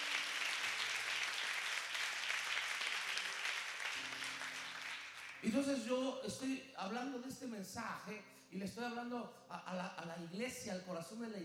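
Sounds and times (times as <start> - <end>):
church congregation applauding: 0.0 - 5.8
speech: 5.4 - 11.4.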